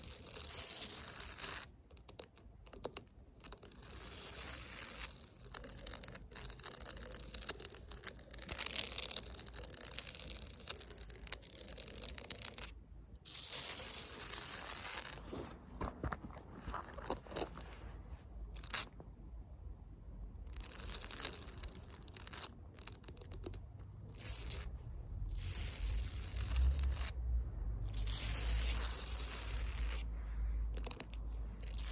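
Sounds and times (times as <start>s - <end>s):
fake nails scratching across concrete: 0.0s - 17.6s, 18.5s - 19.0s, 20.4s - 24.7s, 25.3s - 27.2s, 27.8s - 30.1s, 30.7s - 31.9s
low rumble: 24.7s - 28.2s.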